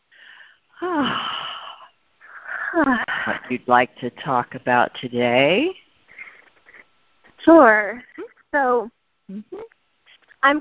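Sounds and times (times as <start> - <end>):
person breathing with a wheezy exhale: 0.1 - 3.4, 6.1 - 6.9
speech: 0.8 - 1.3, 2.8 - 5.8, 7.4 - 9.7.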